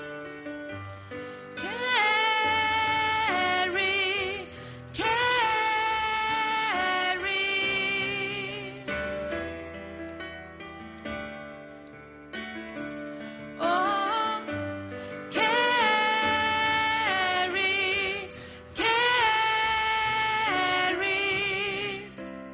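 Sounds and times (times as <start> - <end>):
soprano voice: 1.4 - 9.1, 13.5 - 22.4.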